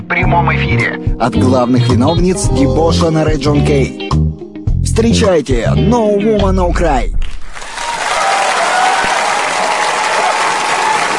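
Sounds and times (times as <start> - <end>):
speech: 0.1 - 4.3, 4.9 - 7.4
audience applause, ovation: 7.5 - 11.1.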